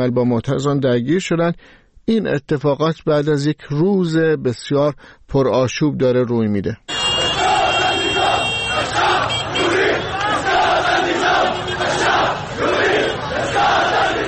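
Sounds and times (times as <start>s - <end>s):
speech: 0.0s - 6.9s
protesters chanting slogans: 6.9s - 14.2s.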